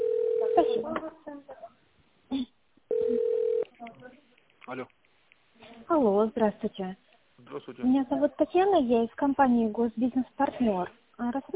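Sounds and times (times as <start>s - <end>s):
telephone line tone while a call is transferred: 0.0s - 0.8s, 2.9s - 3.7s
speech: 0.6s - 1.2s, 4.7s - 5.0s, 6.0s - 7.0s, 7.6s - 11.5s.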